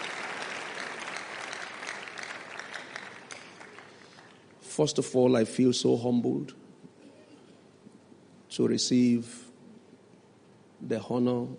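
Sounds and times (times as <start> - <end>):
audience clapping: 0.0 - 4.6
speech: 4.8 - 6.6, 8.6 - 9.4, 10.9 - 11.5.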